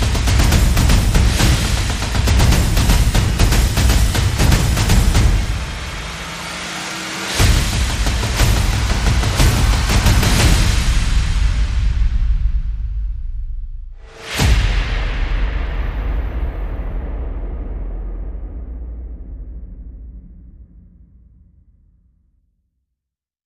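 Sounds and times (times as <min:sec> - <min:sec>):
sound effects: 0:00.0 - 0:13.0
percussion: 0:00.0 - 0:20.7.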